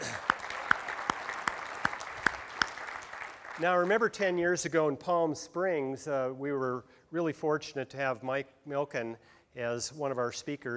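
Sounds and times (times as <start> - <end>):
audience round of applause: 0.0 - 4.0
speech: 3.6 - 10.7.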